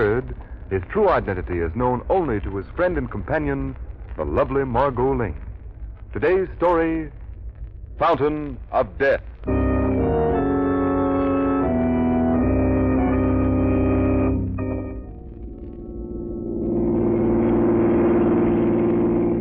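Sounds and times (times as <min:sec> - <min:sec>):
speech: 0:00.0 - 0:05.5, 0:06.1 - 0:07.2, 0:08.0 - 0:09.6
sustained organ-like chord: 0:09.5 - 0:18.8.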